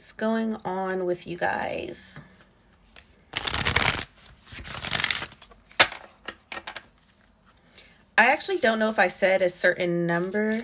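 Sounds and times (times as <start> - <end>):
speech: 0.2 - 2.3, 8.2 - 10.6
Moon oracle card deck riffling: 3.3 - 5.5.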